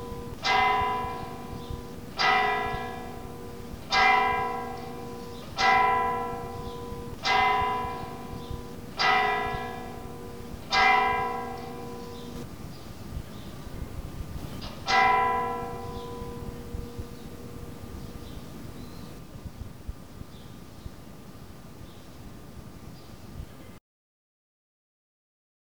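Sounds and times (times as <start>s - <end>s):
church bells ringing for dawn mass or rosary: 0.0s - 12.6s, 14.4s - 19.2s.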